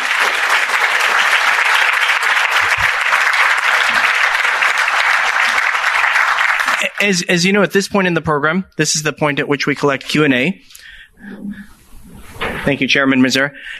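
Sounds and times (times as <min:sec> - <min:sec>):
audience applause: 0:00.0 - 0:07.3
speech: 0:07.0 - 0:11.7, 0:12.6 - 0:13.7.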